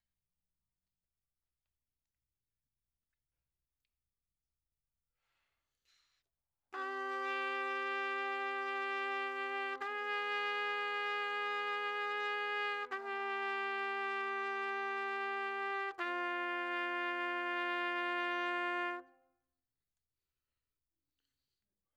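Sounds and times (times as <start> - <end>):
trumpet: 6.8 - 19.4.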